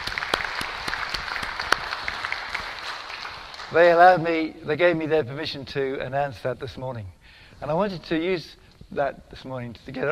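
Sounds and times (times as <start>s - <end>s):
audience clapping: 0.0s - 4.3s
speech: 3.7s - 10.1s.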